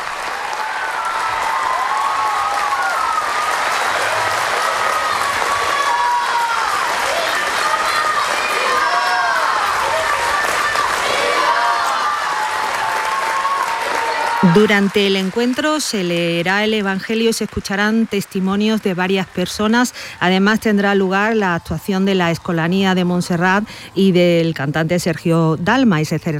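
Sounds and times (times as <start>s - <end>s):
large crowd cheering and whooping: 0.0s - 14.9s
large crowd applauding: 0.0s - 20.7s
speech: 14.5s - 26.3s.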